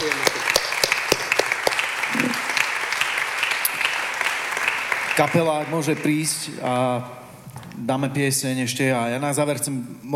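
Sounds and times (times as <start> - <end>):
audience applause: 0.0 - 6.5
speech: 5.2 - 7.2, 7.8 - 10.1.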